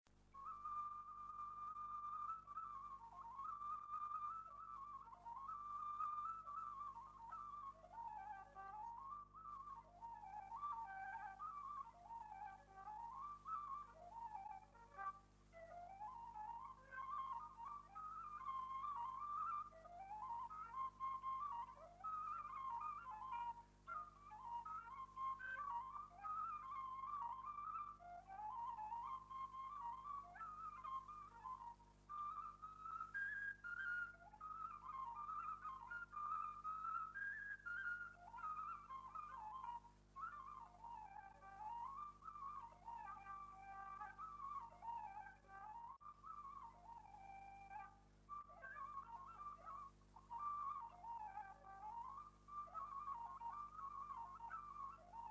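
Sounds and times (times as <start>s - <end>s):
hora de plai folk dance tune on a fluier: 0.0s - 55.3s.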